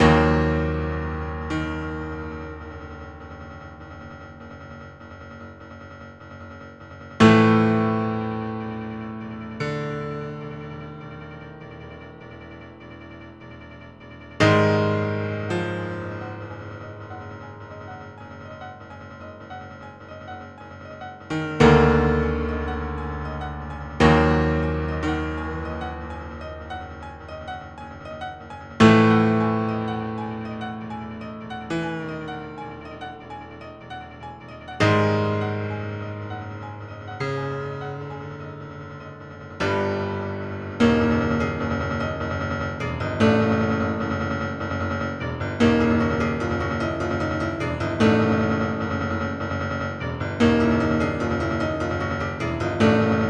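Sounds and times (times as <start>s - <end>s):
piano main menu title music: 0.0s - 53.2s.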